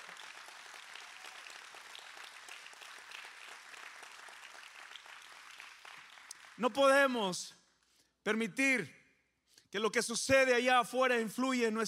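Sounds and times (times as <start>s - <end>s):
large crowd applauding loudly: 0.0s - 6.7s
speech: 6.6s - 7.6s, 8.2s - 9.0s, 9.7s - 11.8s.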